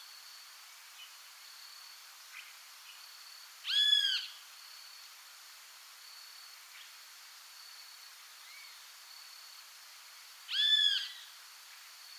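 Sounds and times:
great kiskadee giving harsh squawking calls: 0:10.5 - 0:11.2.

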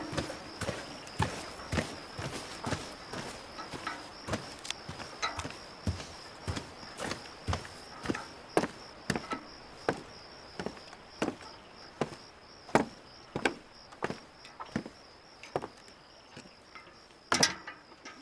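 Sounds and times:
high insect-like whine: 0:00.0 - 0:12.6
footsteps of a man carrying a bucket across a field toward a lake: 0:00.0 - 0:16.6.

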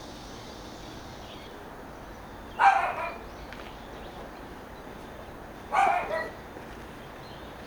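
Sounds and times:
dog barking in rural residential Seoul: 0:02.5 - 0:03.3, 0:05.7 - 0:06.4.

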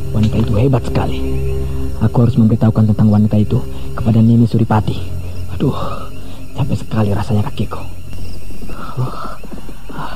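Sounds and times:
speech: 0:00.6 - 0:08.0
horse hoofbeats approaching from a distance: 0:08.1 - 0:10.1.

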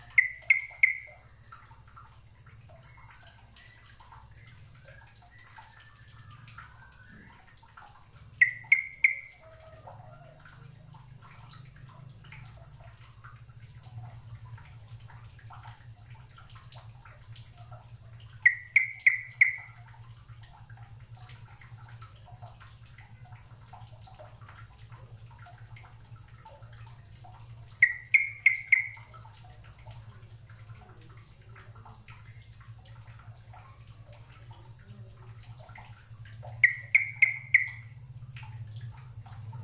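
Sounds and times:
bird calling: 0:00.0 - 0:01.2, 0:08.3 - 0:09.6, 0:18.4 - 0:19.7, 0:27.8 - 0:29.1, 0:36.6 - 0:38.0.

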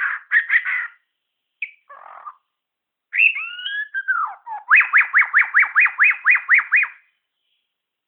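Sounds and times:
white-rumped shama singing: 0:00.0 - 0:07.8.

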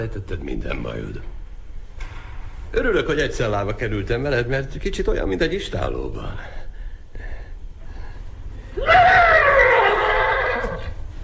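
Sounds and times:
speech: 0:00.0 - 0:01.4, 0:02.7 - 0:06.6
thirsty horse neighing: 0:08.8 - 0:11.0.

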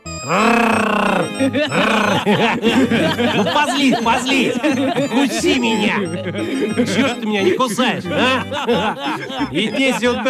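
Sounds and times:
laughter: 0:00.2 - 0:10.2
speech: 0:00.2 - 0:10.2
man growling like a big cat at a lion: 0:00.3 - 0:02.3.

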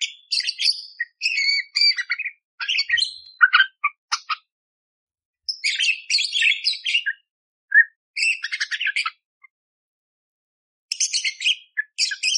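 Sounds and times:
budgerigar chattering: 0:00.0 - 0:04.5, 0:05.5 - 0:09.2, 0:10.9 - 0:12.3.

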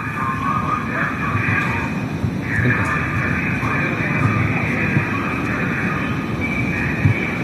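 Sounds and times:
local police car engine and road rumble: 0:00.0 - 0:07.4.

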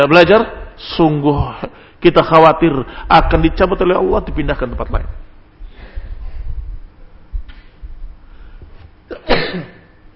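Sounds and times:
speech: 0:00.0 - 0:05.2, 0:09.3 - 0:09.8
rumbling: 0:03.1 - 0:08.6
faint shuffling: 0:05.6 - 0:09.1
person sneezing: 0:09.1 - 0:10.0.

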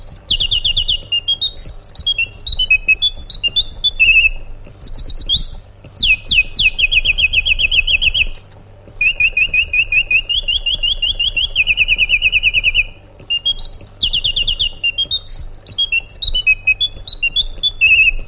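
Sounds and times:
sooty-headed bulbul singing: 0:00.0 - 0:18.2.

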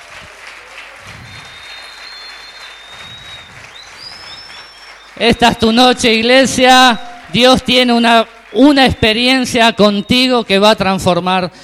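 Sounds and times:
audience applause: 0:00.0 - 0:09.7
thin high whistling tone: 0:01.1 - 0:05.2
speech: 0:05.2 - 0:11.6.

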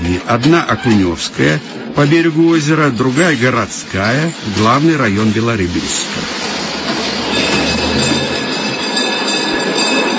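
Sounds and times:
old tram car wheels squealing on rails: 0:00.0 - 0:10.1
speech: 0:00.2 - 0:07.0
old tram car of a suburban dacha line rolling in on rails: 0:04.6 - 0:10.1.

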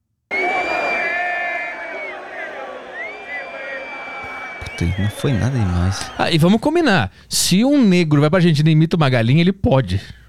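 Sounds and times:
football stadium crowd roaring and chanting in a played video: 0:00.3 - 0:06.4
speech: 0:04.8 - 0:10.2.

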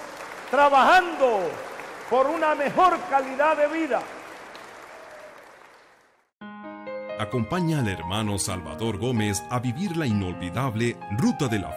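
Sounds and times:
audience applause: 0:00.0 - 0:06.3
speech: 0:00.5 - 0:04.2, 0:07.2 - 0:11.7.

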